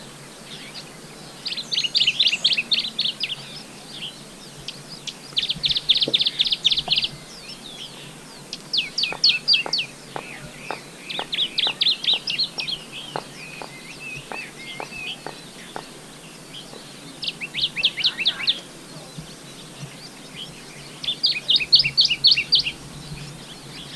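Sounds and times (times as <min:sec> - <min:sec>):
Dusky Warbler Phylloscopus fuscatus singing in Guangxi Shanli: 0:00.0 - 0:23.9.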